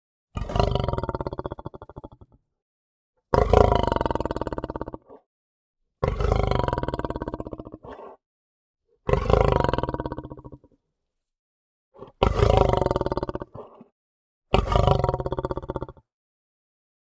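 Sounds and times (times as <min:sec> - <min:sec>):
lion growling: 0:00.4 - 0:02.3, 0:03.4 - 0:05.3, 0:06.0 - 0:08.2, 0:09.1 - 0:10.7, 0:12.0 - 0:13.9, 0:14.6 - 0:16.0.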